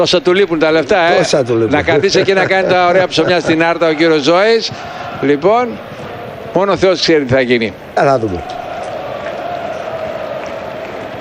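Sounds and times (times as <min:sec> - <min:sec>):
speech: 0:00.0 - 0:06.0, 0:06.6 - 0:08.6
laughter: 0:00.9 - 0:05.2
German football fans chanting in a stadium: 0:02.8 - 0:11.1.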